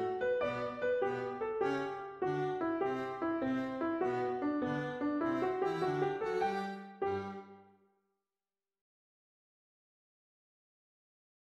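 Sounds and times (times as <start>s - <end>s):
viola playing a jig melody: 0.0s - 7.6s.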